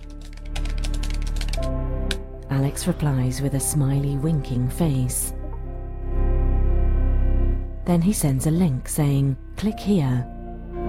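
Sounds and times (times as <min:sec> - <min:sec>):
rapid typing on a keyboard as a message is written: 0:00.0 - 0:01.7
steady music: 0:00.0 - 0:10.8
speech: 0:02.5 - 0:05.4, 0:07.9 - 0:10.3.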